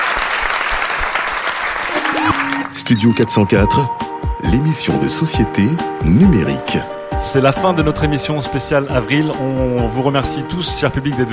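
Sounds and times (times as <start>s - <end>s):
studio audience applauding at the end of a live special show: 0.0s - 3.1s
speech: 2.7s - 11.3s.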